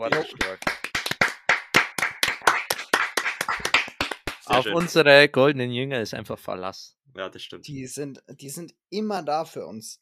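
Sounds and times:
speech: 0:00.0 - 0:00.7, 0:04.6 - 0:10.0
hand clapping: 0:00.0 - 0:05.0.

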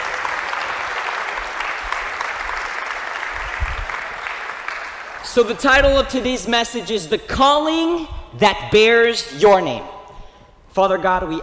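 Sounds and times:
audience applause: 0:00.0 - 0:05.7
speech: 0:05.3 - 0:09.9, 0:10.8 - 0:11.4.

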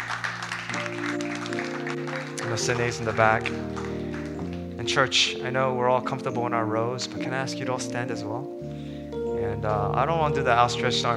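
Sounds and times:
audience applause: 0:00.0 - 0:04.6
speech: 0:02.6 - 0:03.8, 0:04.8 - 0:08.6, 0:09.6 - 0:11.1.

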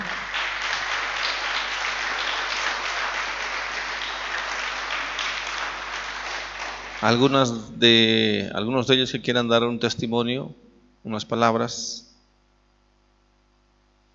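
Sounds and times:
audience applause of welcome: 0:00.0 - 0:07.5
speech: 0:07.0 - 0:12.0.

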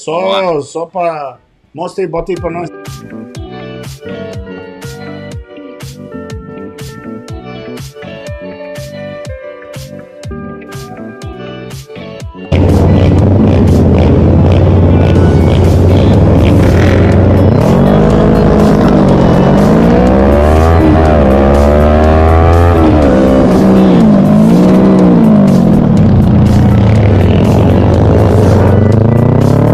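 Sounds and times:
speech: 0:00.0 - 0:03.3
kart engine revving on a racing track video: 0:12.5 - 0:29.7.

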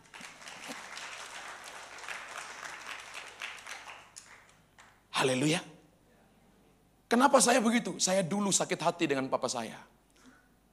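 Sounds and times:
audience applause: 0:00.0 - 0:05.0
speech: 0:05.2 - 0:05.7, 0:07.1 - 0:10.0.

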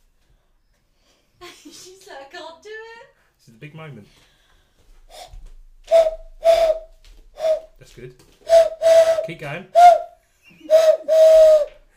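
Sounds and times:
speech: 0:03.5 - 0:04.3, 0:07.8 - 0:08.4, 0:09.3 - 0:10.0
person whistling like a steam train whistle: 0:05.9 - 0:07.7, 0:08.4 - 0:11.8.

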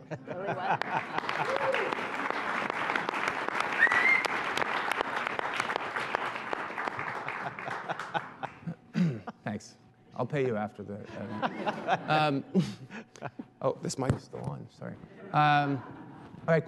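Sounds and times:
laughter: 0:00.0 - 0:01.9, 0:07.0 - 0:09.5, 0:11.0 - 0:13.5, 0:15.1 - 0:16.5
speech: 0:00.1 - 0:01.5, 0:09.6 - 0:12.8, 0:13.6 - 0:15.9, 0:16.5 - 0:16.6
audience applause: 0:00.5 - 0:08.6.

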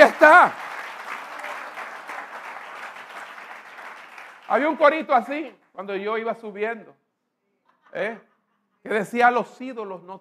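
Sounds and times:
audience applause: 0:00.0 - 0:05.0
speech: 0:00.2 - 0:00.7, 0:04.5 - 0:07.0, 0:07.9 - 0:10.1.

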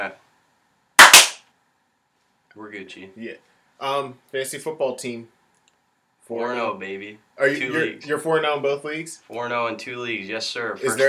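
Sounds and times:
speech: 0:00.0 - 0:00.2, 0:02.6 - 0:05.4, 0:06.3 - 0:11.0
hands clapping: 0:01.0 - 0:01.4.

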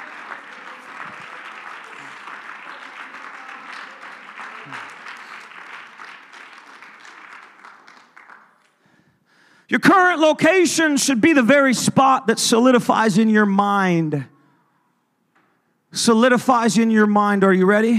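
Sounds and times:
audience clapping hands: 0:00.0 - 0:09.0
speech: 0:09.7 - 0:14.3, 0:16.0 - 0:17.9.

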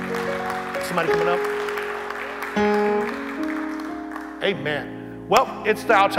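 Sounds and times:
audience clapping hands: 0:00.0 - 0:04.8
speech: 0:00.9 - 0:01.5, 0:02.6 - 0:03.2, 0:04.4 - 0:06.1.

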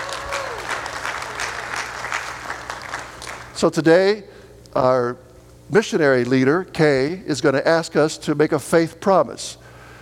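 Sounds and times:
audience applause: 0:00.0 - 0:03.6
speech: 0:03.6 - 0:09.6.

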